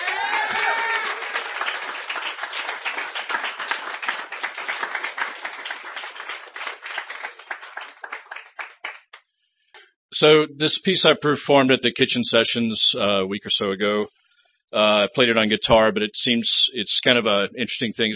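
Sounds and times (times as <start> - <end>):
audience applause for a performer at a live reading: 0.0 - 9.2
speech: 10.2 - 18.1.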